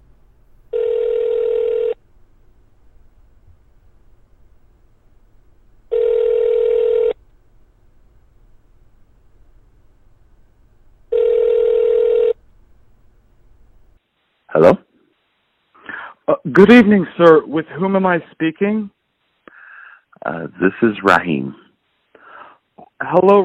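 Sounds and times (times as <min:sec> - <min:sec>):
faint low hum: 0:00.0 - 0:23.4
phone line ringback tone: 0:00.7 - 0:02.0, 0:05.9 - 0:07.2, 0:11.1 - 0:12.4
speech: 0:16.6 - 0:19.0, 0:20.2 - 0:21.6, 0:23.0 - 0:23.4.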